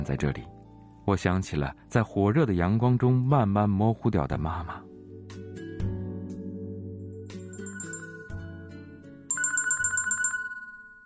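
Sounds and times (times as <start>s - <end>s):
speech: 0.0s - 4.9s
mobile phone ringing: 7.4s - 11.0s.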